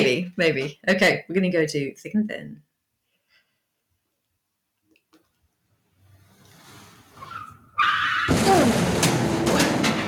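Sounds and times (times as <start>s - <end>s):
speech: 0.0s - 2.7s
car skidding with tire squeal: 6.6s - 8.5s
car repeatedly crashing into industrial dumpster: 7.3s - 10.0s
sharp bangs: 7.9s - 10.0s.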